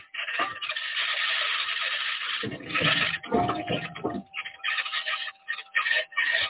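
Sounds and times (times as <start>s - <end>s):
Mars rover aluminum wheels rolling over rocks: 0.0s - 6.4s.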